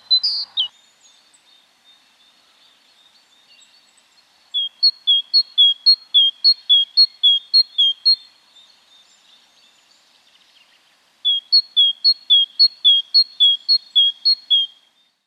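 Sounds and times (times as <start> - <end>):
great tit call series: 0.0 - 4.0, 4.6 - 10.0, 11.3 - 15.2.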